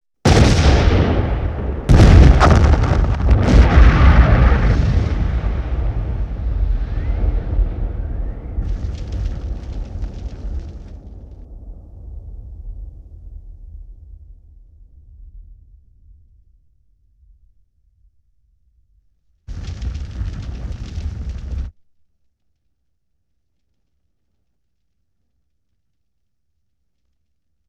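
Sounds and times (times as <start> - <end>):
explosion: 0.3 - 16.2, 19.5 - 21.7.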